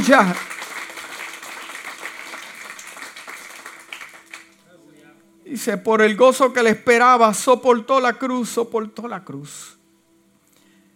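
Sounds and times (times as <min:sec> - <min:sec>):
speech: 0:00.0 - 0:00.6, 0:05.5 - 0:09.8
audience applauding loudly: 0:00.0 - 0:04.6.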